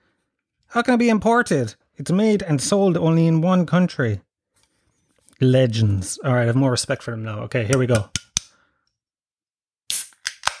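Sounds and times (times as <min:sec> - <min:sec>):
speech: 0:00.7 - 0:04.3, 0:05.4 - 0:08.2
can tab clicks: 0:07.7 - 0:08.5, 0:09.9 - 0:10.5
drink can being opened with fizz: 0:09.9 - 0:10.5.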